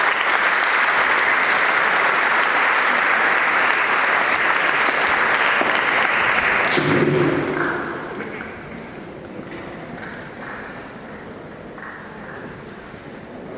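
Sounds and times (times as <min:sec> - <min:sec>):
audience applause at a school awards ceremony: 0:00.0 - 0:08.6.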